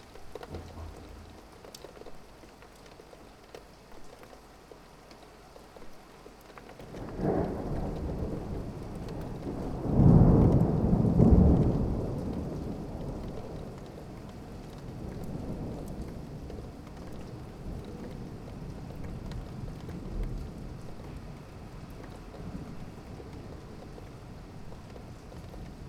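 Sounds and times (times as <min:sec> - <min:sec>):
rain heard out of a window: 0:00.0 - 0:25.8
thunder: 0:00.4 - 0:02.0, 0:06.9 - 0:21.2.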